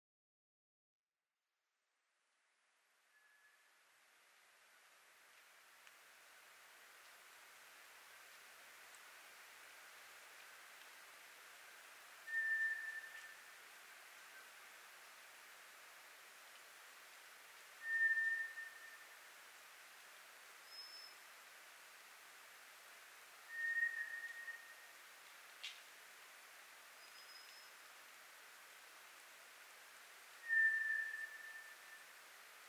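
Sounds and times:
White's thrush song of long thin steady whistles: 12.2 - 13.6, 17.8 - 19.2, 20.6 - 21.2, 23.4 - 25.0, 27.0 - 28.0, 30.4 - 32.2.

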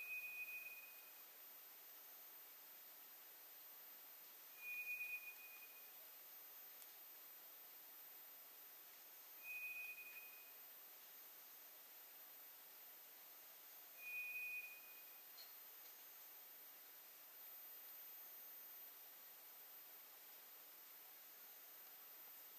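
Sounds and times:
White's thrush monotone whistle: 0.0 - 1.1, 4.6 - 5.9, 9.4 - 10.6, 14.0 - 15.2
soft hiss: 0.0 - 22.5.

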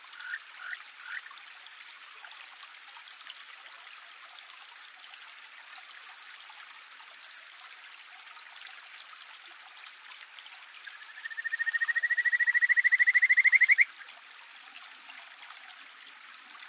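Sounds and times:
Kajika frog giving whistled notes: 11.2 - 13.9.

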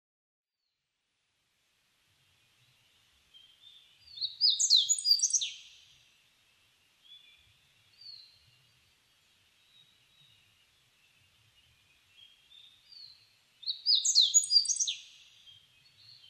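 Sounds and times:
Meadow bunting singing: 3.3 - 5.9, 9.6 - 16.2.

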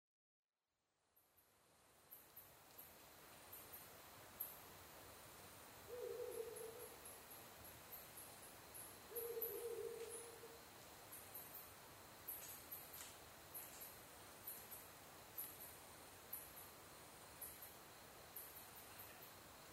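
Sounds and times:
steady hiss: 1.1 - 19.7
Ural Owl hooting: 5.9 - 7.0, 9.1 - 10.6.

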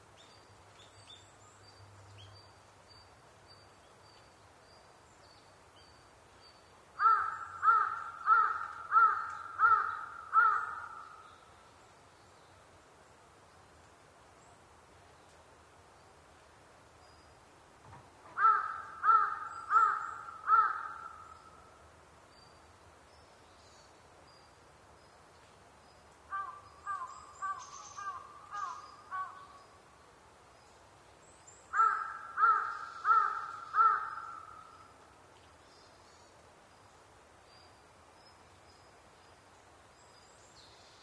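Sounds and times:
large-billed crow cawing: 7.0 - 11.2, 18.3 - 21.4, 26.3 - 29.5, 31.7 - 34.7.

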